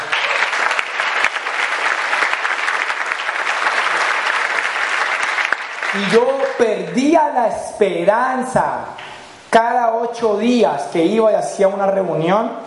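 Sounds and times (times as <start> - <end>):
audience applause: 0.0 - 7.1
speech: 6.0 - 12.6.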